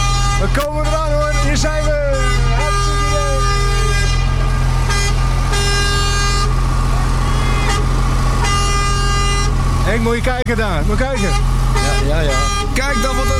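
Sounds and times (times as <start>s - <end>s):
truck air horn blasts: 0.0s - 9.9s, 10.8s - 13.3s
speech: 0.4s - 2.0s, 9.9s - 13.3s.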